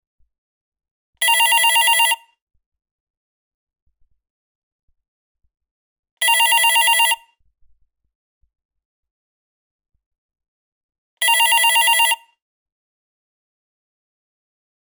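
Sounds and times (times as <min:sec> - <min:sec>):
telephone: 0:01.2 - 0:02.3, 0:06.2 - 0:07.2, 0:11.2 - 0:12.4.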